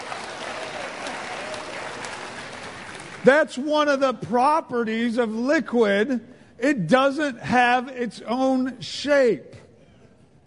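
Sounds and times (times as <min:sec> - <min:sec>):
clapping: 0:00.0 - 0:03.3
speech: 0:03.2 - 0:09.6.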